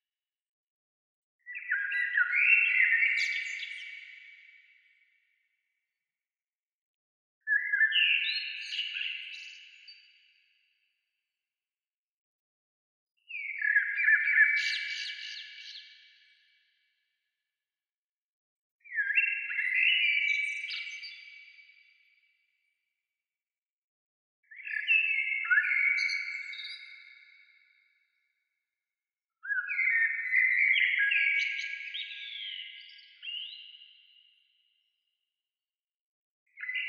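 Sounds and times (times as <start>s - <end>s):
bird song: 1.4s - 6.0s, 7.4s - 11.2s, 13.2s - 17.3s, 18.8s - 23.0s, 24.4s - 28.7s, 29.3s - 35.2s, 36.5s - 36.8s.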